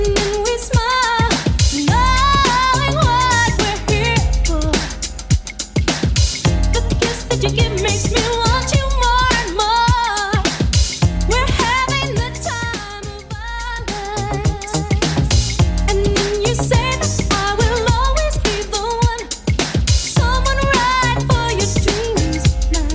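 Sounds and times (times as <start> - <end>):
90s-style music at 105 bpm: 0.0 - 22.9.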